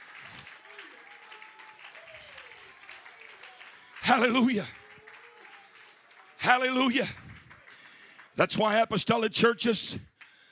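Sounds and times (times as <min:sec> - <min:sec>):
audience clapping hands: 0:00.0 - 0:10.4
speech: 0:04.1 - 0:04.8, 0:06.5 - 0:07.2, 0:08.4 - 0:10.1.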